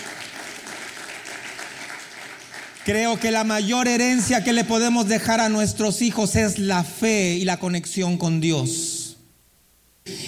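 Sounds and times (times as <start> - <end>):
church congregation applauding: 0.0 - 4.4
speech: 2.8 - 8.9.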